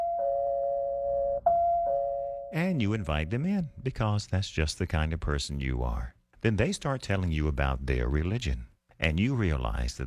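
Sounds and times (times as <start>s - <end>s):
doorbell buzzing: 0.0s - 2.6s
speech: 2.5s - 10.0s.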